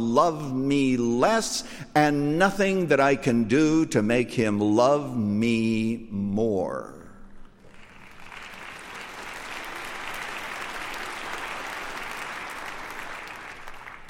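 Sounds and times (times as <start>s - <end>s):
speech: 0.0s - 7.0s
audience clapping: 7.6s - 14.0s.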